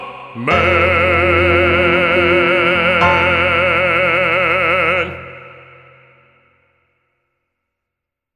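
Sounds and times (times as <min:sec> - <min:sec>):
bass: 0:00.0 - 0:06.2.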